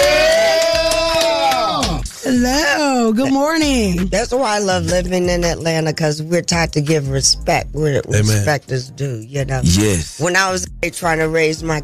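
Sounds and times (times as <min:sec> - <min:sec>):
high sustained whoop: 0:00.0 - 0:02.0
small crowd cheering: 0:00.0 - 0:02.1
scattered claps: 0:00.0 - 0:02.2
speech: 0:02.4 - 0:11.8.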